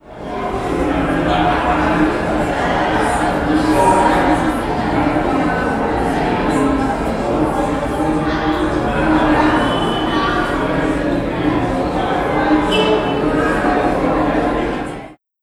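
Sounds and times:
crowd walla: 0.0 - 15.2.

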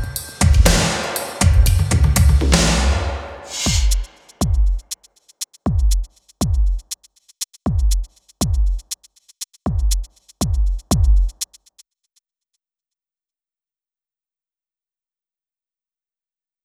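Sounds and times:
drums at 120 BPM: 0.0 - 11.8.

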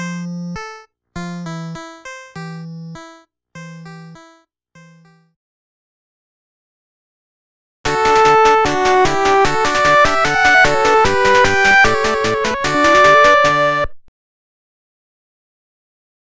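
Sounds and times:
jigsaw completion jingle: 7.9 - 13.9
opening main theme music: 7.9 - 14.0.

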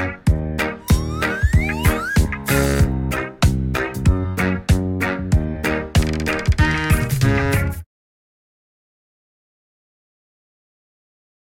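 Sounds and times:
instrumental music: 0.0 - 7.8.

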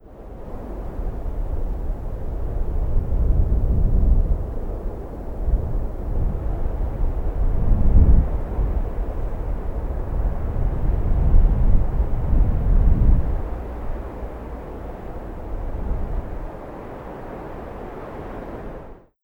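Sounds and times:
wind at Blackrock: 0.0 - 19.2.

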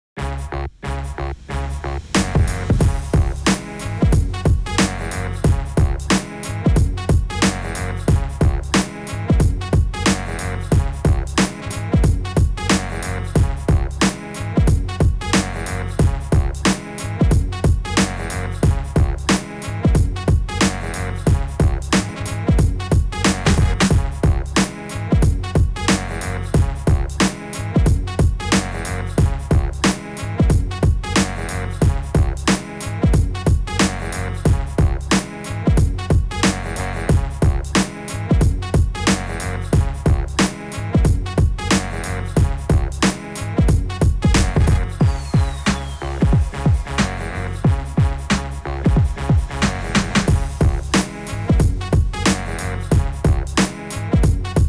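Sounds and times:
groove instrumental: 0.2 - 54.6.

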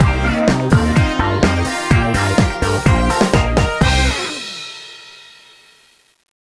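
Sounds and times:
disco music: 0.0 - 4.9.

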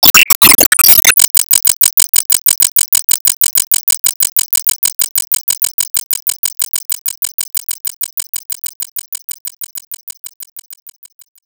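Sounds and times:
circle laser loop: 0.0 - 2.3.

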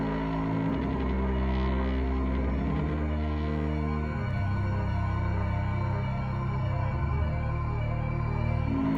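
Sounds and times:
high action Halloween music: 0.0 - 8.9.

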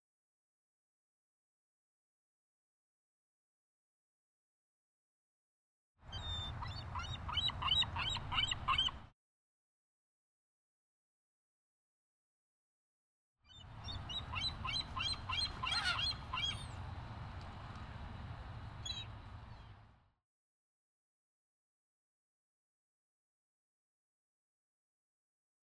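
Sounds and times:
seagulls at the Golden Gate Bridge: 6.1 - 9.1, 13.6 - 19.9.

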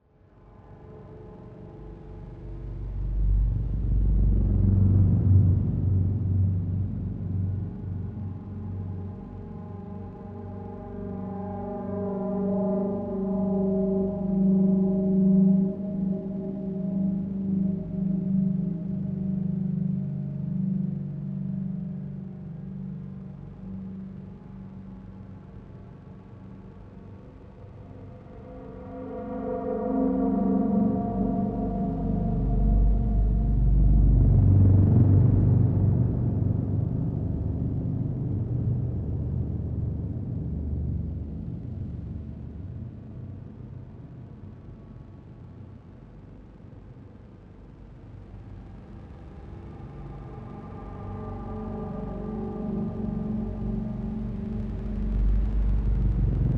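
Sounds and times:
subtle dark horror music: 0.1 - 56.5.

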